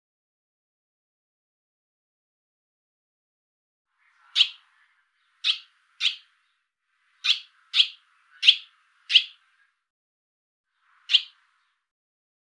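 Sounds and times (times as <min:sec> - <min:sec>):
barn swallow chirping with softer buzzy notes: 0:04.0 - 0:09.7, 0:10.9 - 0:11.8.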